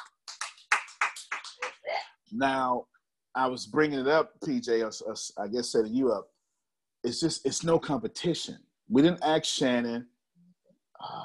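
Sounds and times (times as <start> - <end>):
clapping: 0.0 - 1.8
speech: 2.3 - 6.3, 7.0 - 10.1, 11.0 - 11.2.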